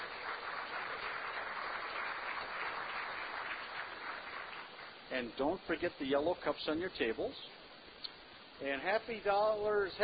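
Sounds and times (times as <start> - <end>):
round of applause: 0.0 - 5.1
speech: 5.1 - 7.6, 8.6 - 10.0.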